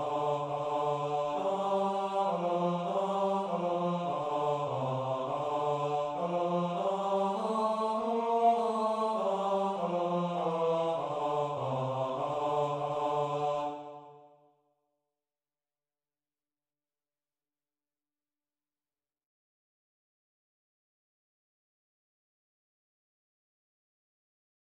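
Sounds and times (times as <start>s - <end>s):
Gregorian chant: 0.0s - 14.4s.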